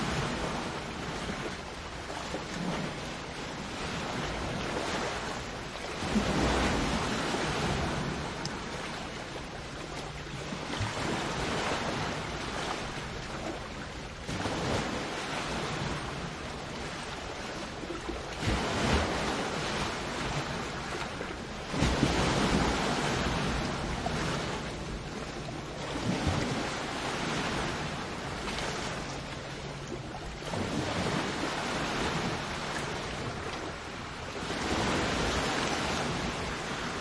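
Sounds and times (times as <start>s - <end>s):
waves crashing on a lake: 0.0s - 36.9s.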